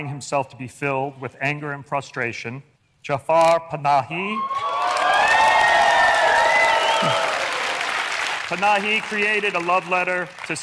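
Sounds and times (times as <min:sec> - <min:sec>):
speech: 0:00.0 - 0:04.7, 0:07.0 - 0:07.2, 0:08.5 - 0:10.6
faint cheering: 0:04.4 - 0:07.9
large audience applause: 0:04.6 - 0:10.6.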